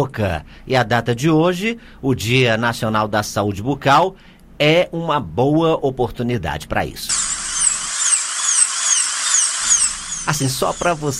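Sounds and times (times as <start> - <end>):
speech: 0.0 - 7.2, 10.2 - 11.1
dentist's drill whining: 7.1 - 11.1.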